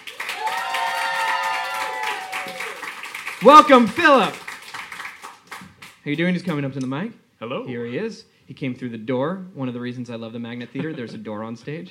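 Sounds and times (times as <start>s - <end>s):
voices cheering in the crowd: 0.0s - 5.6s
sustained audience applause: 0.0s - 6.0s
speech: 3.4s - 4.4s, 6.0s - 11.9s.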